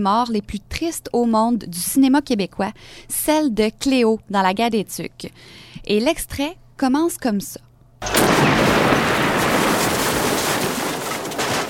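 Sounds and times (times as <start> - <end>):
speech: 0.0 - 8.6
snow fort wall collapsing: 8.0 - 11.6.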